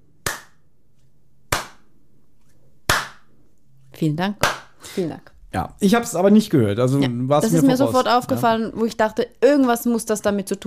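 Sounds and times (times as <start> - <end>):
slow sharp hand claps: 0.2 - 0.6, 1.5 - 1.9, 2.9 - 3.3, 4.4 - 4.8
speech: 4.0 - 10.6.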